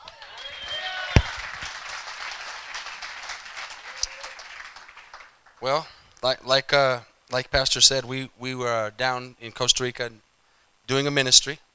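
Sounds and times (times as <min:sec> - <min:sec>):
audience applause: 0:00.0 - 0:05.8
speech: 0:05.6 - 0:10.2, 0:10.9 - 0:11.6.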